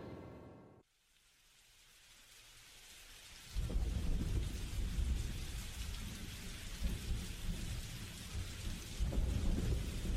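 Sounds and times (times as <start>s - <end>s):
steady rain pouring: 0.9s - 10.1s
deep rolling thunder: 3.5s - 10.1s.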